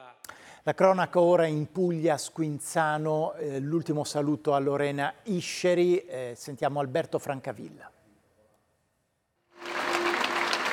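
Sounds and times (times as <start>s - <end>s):
speech: 0.6s - 8.0s
long applause from hundreds of people: 9.6s - 10.7s.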